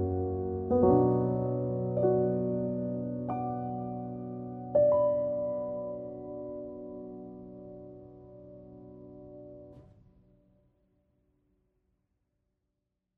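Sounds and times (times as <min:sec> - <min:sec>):
sad piano music: 0:00.0 - 0:09.9.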